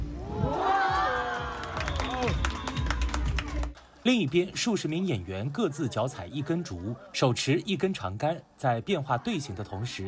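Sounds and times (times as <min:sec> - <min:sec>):
audience cheering: 0:00.2 - 0:03.7
speech: 0:04.0 - 0:10.0.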